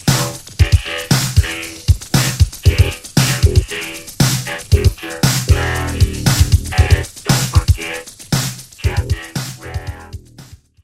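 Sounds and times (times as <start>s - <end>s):
hip hop beat: 0.0s - 10.6s
record scratching: 2.2s - 7.8s.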